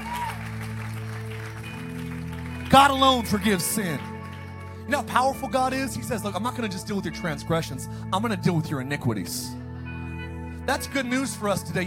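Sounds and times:
audience clapping: 0:00.0 - 0:04.8
speech: 0:02.7 - 0:04.1, 0:04.9 - 0:09.6, 0:10.7 - 0:11.8.

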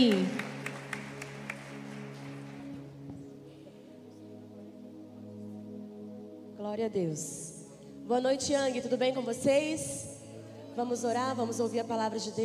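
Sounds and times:
speech: 0:00.0 - 0:00.4, 0:06.8 - 0:07.5, 0:08.1 - 0:10.1, 0:10.8 - 0:12.4
audience applause for a speaker: 0:00.0 - 0:02.8.

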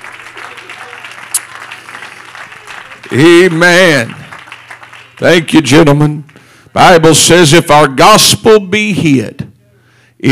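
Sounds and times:
audience clapping: 0:00.0 - 0:06.6
speech: 0:03.0 - 0:04.2, 0:05.2 - 0:09.4.

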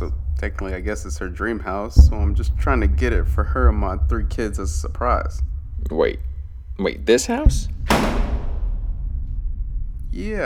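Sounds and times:
speech: 0:00.0 - 0:08.2, 0:10.2 - 0:10.4
door slamming shut: 0:07.5 - 0:09.2.

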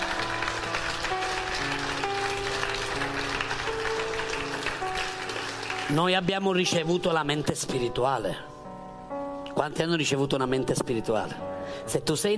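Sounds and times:
audience applauding: 0:00.0 - 0:06.7
speech: 0:05.9 - 0:08.5, 0:09.6 - 0:12.3.

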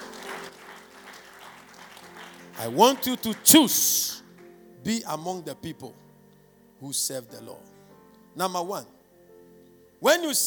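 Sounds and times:
audience applause: 0:00.0 - 0:03.8
speech: 0:02.6 - 0:04.2, 0:04.8 - 0:06.0, 0:06.8 - 0:07.8, 0:08.4 - 0:09.0, 0:10.0 - 0:10.4.

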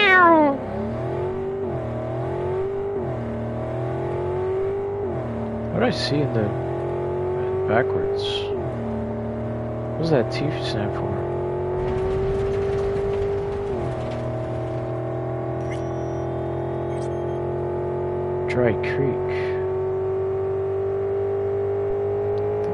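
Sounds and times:
car engine drone in video game: 0:00.0 - 0:22.7
speech: 0:05.8 - 0:06.7, 0:07.7 - 0:08.5, 0:10.0 - 0:11.2, 0:18.6 - 0:19.6.

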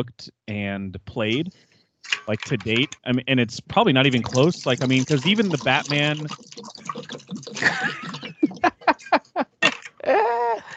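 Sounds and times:
speech: 0:00.0 - 0:06.8
person drinking water into a microphone: 0:03.8 - 0:09.0
laughter: 0:07.6 - 0:10.7.

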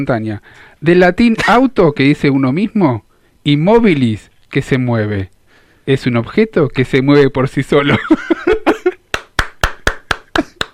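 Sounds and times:
speech: 0:00.0 - 0:05.3, 0:05.9 - 0:08.4
laughter: 0:07.8 - 0:09.0, 0:10.2 - 0:10.7
sharp slow hand claps: 0:09.1 - 0:10.7.

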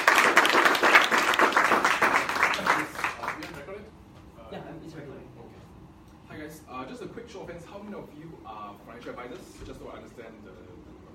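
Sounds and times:
audience applause: 0:00.0 - 0:03.6
speech: 0:07.3 - 0:11.0.

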